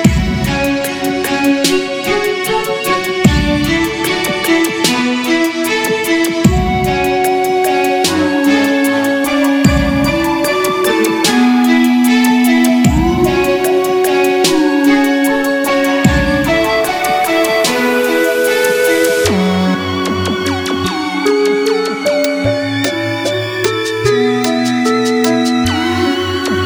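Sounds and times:
strange sanctuary music loop: 0.2 - 26.6.

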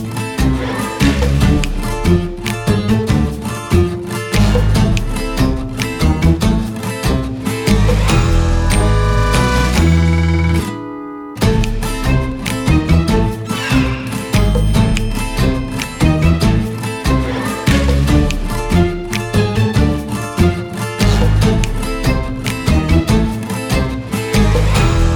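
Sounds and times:
acoustic comedy music: 0.0 - 25.1.

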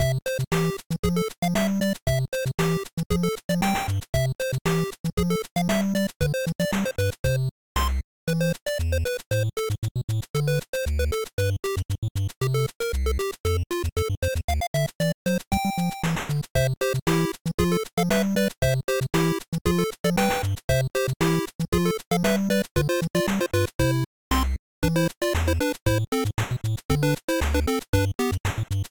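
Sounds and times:
small repetitive platformer track in old hardware style: 0.0 - 28.9.

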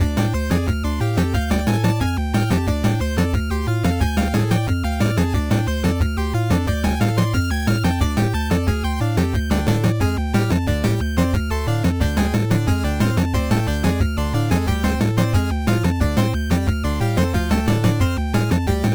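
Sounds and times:
chiptune music: 0.0 - 18.9.

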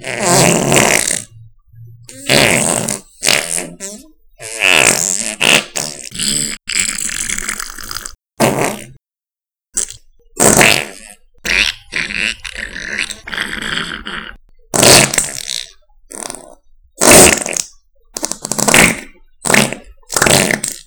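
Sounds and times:
stomach rumbling from gastric distress: 0.0 - 9.0, 9.8 - 20.8.

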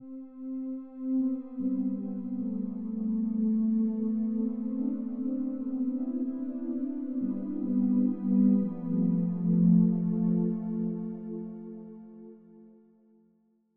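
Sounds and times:
losing music: 0.0 - 12.8.

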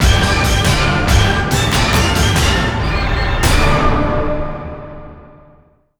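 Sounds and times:
jingle: 0.0 - 4.8.

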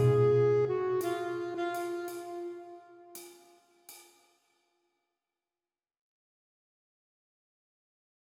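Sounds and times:
jazz music: 0.0 - 3.5.

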